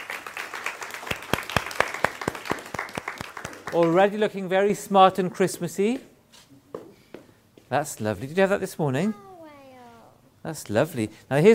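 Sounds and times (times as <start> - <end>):
audience applause for a performer: 0.0 - 4.1
speech: 3.7 - 6.1, 7.7 - 9.3, 10.4 - 11.5.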